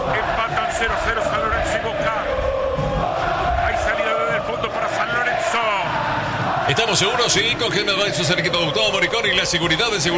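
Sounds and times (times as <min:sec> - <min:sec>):
football fans chanting and cheering at a match: 0:00.0 - 0:10.1
speech: 0:00.8 - 0:02.4, 0:06.7 - 0:10.1.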